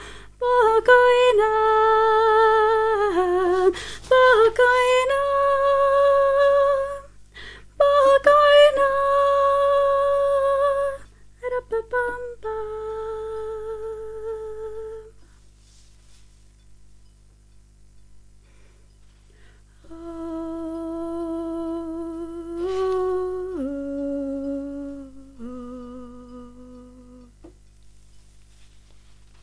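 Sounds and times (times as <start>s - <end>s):
soprano voice: 0.0s - 7.2s, 7.8s - 15.2s, 19.8s - 27.5s.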